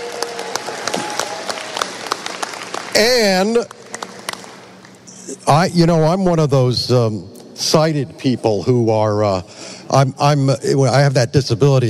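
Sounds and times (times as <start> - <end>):
round of applause: 0.0 - 4.8
speech: 3.0 - 3.8, 5.5 - 11.8.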